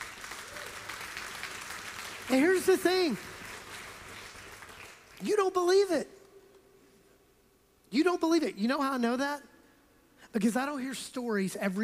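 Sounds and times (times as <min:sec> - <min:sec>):
audience clapping: 0:00.0 - 0:05.8
speech: 0:02.3 - 0:03.4, 0:05.2 - 0:06.2, 0:07.9 - 0:09.5, 0:10.3 - 0:11.8.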